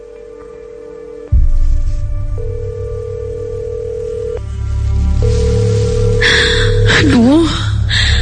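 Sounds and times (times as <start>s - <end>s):
phone call ringing tone with no answer: 0.0s - 1.3s, 2.4s - 4.4s, 5.2s - 7.4s
low rumbling background: 1.3s - 8.2s.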